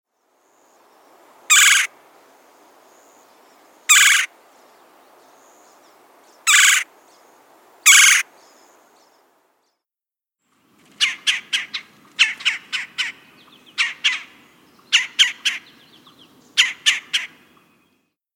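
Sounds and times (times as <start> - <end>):
red-bellied woodpecker giving a rolling churr call: 1.5 - 1.9, 3.9 - 4.3, 6.5 - 6.8, 7.9 - 8.2, 10.8 - 17.7.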